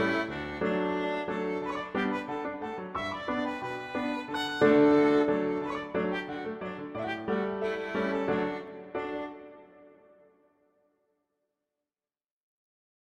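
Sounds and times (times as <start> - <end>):
violin playing allegretto: 0.0 - 10.0.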